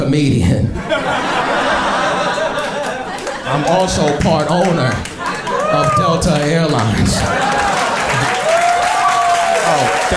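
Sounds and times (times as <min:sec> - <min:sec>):
speech: 0:00.1 - 0:01.4, 0:03.5 - 0:05.1, 0:05.7 - 0:07.8
laughter: 0:00.8 - 0:05.8, 0:06.8 - 0:08.9
audience applause: 0:02.4 - 0:10.1.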